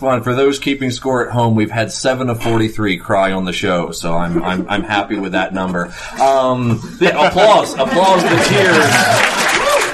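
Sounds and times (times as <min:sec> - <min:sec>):
speech: 0:00.0 - 0:09.4
laughter: 0:07.0 - 0:09.9
audience applause: 0:07.8 - 0:09.9.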